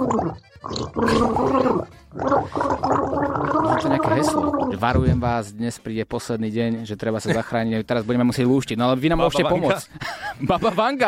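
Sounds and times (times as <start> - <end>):
gargling with water in mouth: 0.0 - 5.1
speech: 0.1 - 2.7, 3.8 - 11.0.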